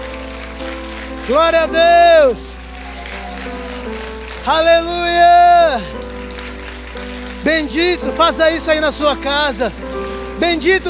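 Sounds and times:
audience applause: 0:00.0 - 0:10.8
faint sustained musical tones: 0:00.0 - 0:10.8
speech: 0:01.3 - 0:02.5, 0:04.4 - 0:06.0, 0:07.4 - 0:10.8.

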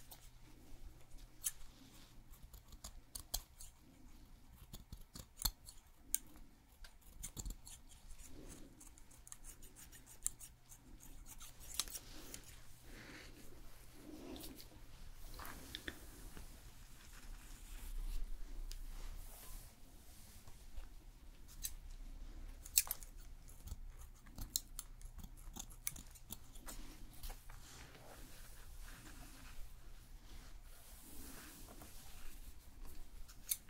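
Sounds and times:
low steady hum: 0:00.0 - 0:33.6
scissors snipping hair in a hair salon: 0:02.4 - 0:03.8, 0:04.5 - 0:12.5, 0:21.5 - 0:21.8, 0:22.6 - 0:26.7, 0:33.3 - 0:33.6
rustling: 0:07.7 - 0:23.4, 0:25.9 - 0:33.6.

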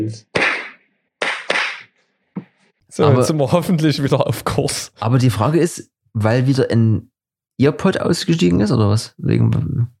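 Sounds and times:
speech: 0:00.0 - 0:00.3, 0:02.9 - 0:09.9
hand clap for recording sync: 0:00.3 - 0:02.6.

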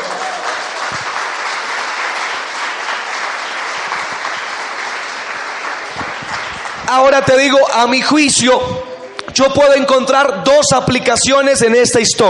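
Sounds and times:
audience applauding: 0:00.0 - 0:08.4
speech: 0:06.9 - 0:12.2.

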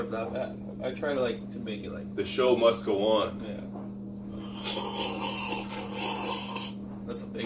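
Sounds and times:
speech: 0:00.0 - 0:03.8, 0:04.4 - 0:06.6
person slurping the last dregs of a coffee: 0:04.4 - 0:06.8.

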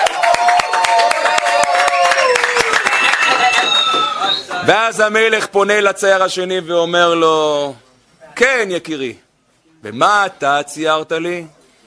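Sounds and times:
audience applause: 0:00.0 - 0:04.4
speech: 0:04.7 - 0:07.8, 0:08.4 - 0:09.2, 0:09.8 - 0:11.6.

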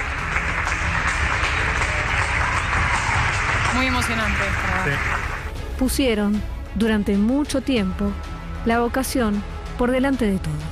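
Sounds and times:
nationwide applause for health workers: 0:00.0 - 0:05.5
speech: 0:03.8 - 0:05.2, 0:05.8 - 0:10.7.

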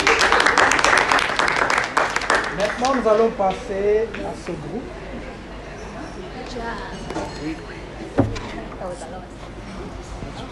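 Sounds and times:
applause: 0:00.0 - 0:03.7
speech: 0:03.0 - 0:05.3, 0:06.6 - 0:09.6.

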